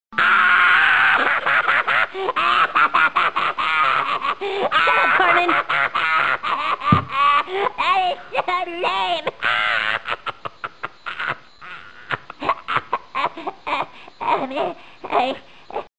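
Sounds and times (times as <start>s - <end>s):
Cartman laughing: 0.2s - 15.9s.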